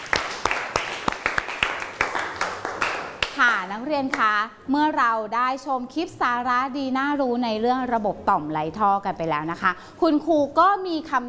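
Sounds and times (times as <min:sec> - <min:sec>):
classroom applause: 0:00.0 - 0:04.3
speech: 0:03.4 - 0:11.2.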